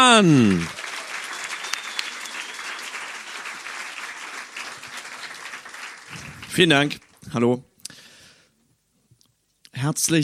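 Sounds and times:
audience applause: 0:00.0 - 0:07.1
speech: 0:00.1 - 0:00.8, 0:06.6 - 0:07.7, 0:09.8 - 0:10.2.

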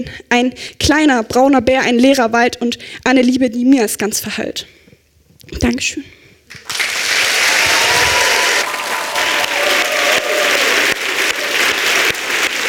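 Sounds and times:
speech: 0:00.0 - 0:04.8, 0:05.5 - 0:06.7
audience applause: 0:06.5 - 0:12.6.

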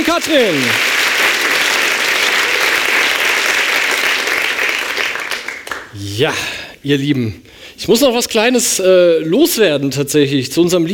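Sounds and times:
loud applause from a large audience: 0:00.0 - 0:05.9
speech: 0:00.1 - 0:01.0, 0:06.0 - 0:10.9.

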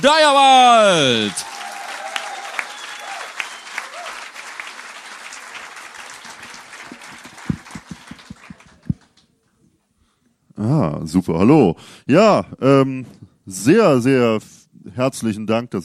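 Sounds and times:
speech: 0:00.0 - 0:01.5, 0:10.8 - 0:15.8
crowd applauding a performer: 0:00.0 - 0:09.2.

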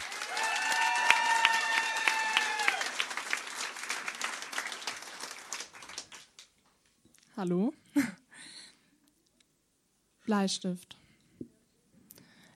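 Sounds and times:
audience applause: 0:00.0 - 0:06.6
speech: 0:07.4 - 0:08.2, 0:10.3 - 0:11.0.

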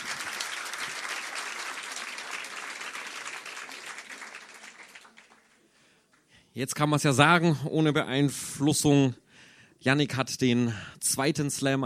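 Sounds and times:
audience applause: 0:00.0 - 0:05.7
speech: 0:06.6 - 0:09.2, 0:09.8 - 0:11.8.

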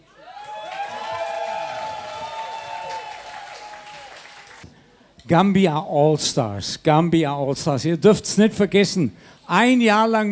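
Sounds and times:
audience applause: 0:00.0 - 0:04.6
speech: 0:05.3 - 0:10.3.

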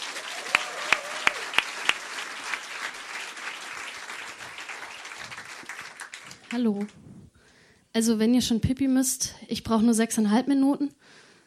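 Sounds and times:
audience applause: 0:00.0 - 0:07.0
speech: 0:06.5 - 0:07.0, 0:08.0 - 0:11.2.

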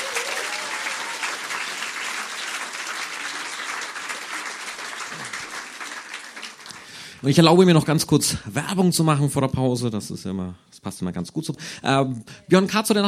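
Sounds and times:
audience applause for a poet: 0:00.0 - 0:07.3
speech: 0:07.2 - 0:13.0.

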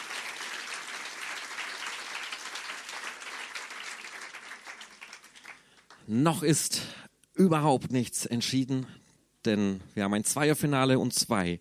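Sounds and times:
audience applause: 0:00.0 - 0:06.1
speech: 0:06.1 - 0:11.5.

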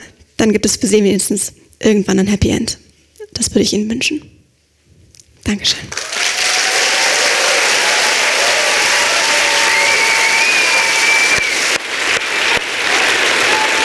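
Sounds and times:
speech: 0:00.4 - 0:02.8, 0:03.4 - 0:04.3, 0:05.4 - 0:06.0
audience applause: 0:05.9 - 0:13.8
faint whistles or cheers: 0:06.0 - 0:11.8, 0:12.4 - 0:13.8.

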